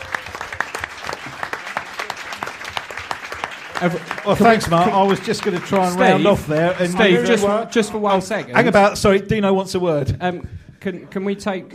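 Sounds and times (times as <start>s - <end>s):
audience applause: 0.0s - 7.6s
speech: 3.8s - 11.7s.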